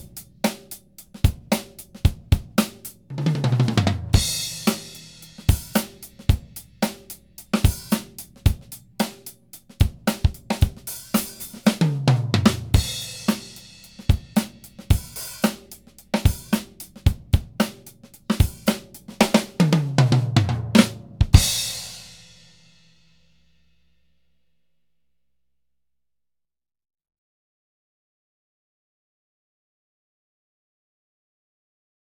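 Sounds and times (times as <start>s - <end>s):
whole drum kit playing: 0.0s - 22.6s.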